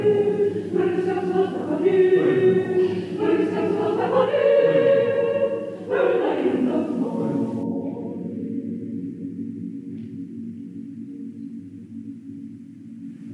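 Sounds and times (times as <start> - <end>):
choir singing: 0.0 - 9.5.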